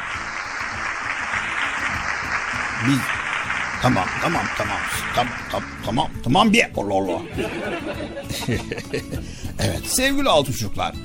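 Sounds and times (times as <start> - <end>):
applause: 0.0 - 5.8
speech: 2.8 - 3.2, 3.8 - 11.0
laughter: 7.0 - 9.4.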